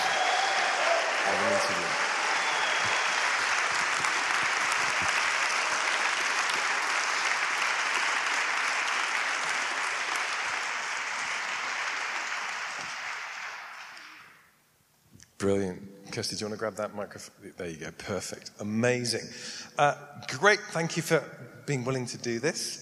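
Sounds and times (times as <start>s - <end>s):
audience applause: 0.0s - 14.4s
speech: 1.3s - 2.1s, 16.2s - 22.8s.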